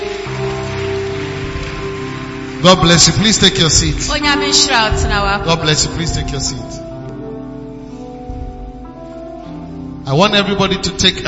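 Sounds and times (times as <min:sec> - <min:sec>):
audience applause: 0:00.0 - 0:05.0
speech: 0:02.6 - 0:06.9, 0:10.1 - 0:11.2.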